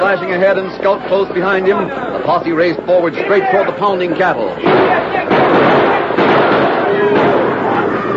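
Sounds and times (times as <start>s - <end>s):
speech: 0.1s - 5.1s
gunshots fired over the heads of steers: 4.6s - 8.0s.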